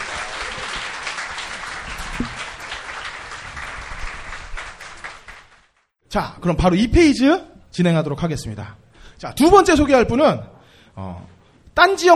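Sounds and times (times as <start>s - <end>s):
audience applause: 0.0s - 5.8s
speech: 6.1s - 12.1s.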